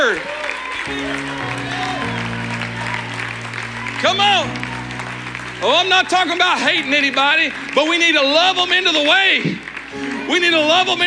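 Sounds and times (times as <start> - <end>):
audience clapping: 0.0 - 11.0
speech: 4.0 - 4.7, 5.6 - 11.0.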